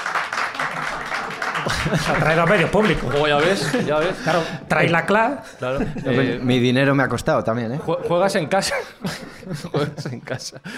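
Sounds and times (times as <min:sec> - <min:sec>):
audience applause: 0:00.0 - 0:04.7
laughter: 0:00.5 - 0:06.5, 0:08.4 - 0:10.7
speech: 0:01.7 - 0:10.7.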